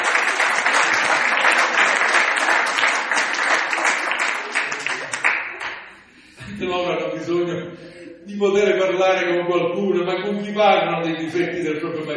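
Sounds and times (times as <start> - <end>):
audience applause: 0.0 - 5.9
speech: 6.7 - 12.1.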